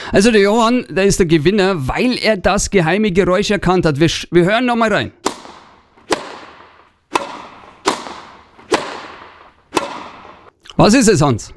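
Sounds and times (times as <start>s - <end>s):
speech: 0.1s - 5.2s, 10.8s - 11.5s
tennis racket hitting ball: 5.2s - 10.5s.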